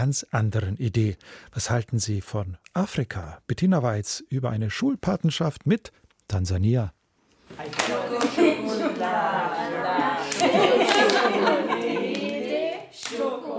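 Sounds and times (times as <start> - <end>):
speech: 0.0 - 11.7
girls chanting while playing a hand-clapping game: 7.6 - 13.5
hand-clapping game slaps: 7.7 - 8.4, 10.2 - 13.4
girls giggling: 8.0 - 12.8.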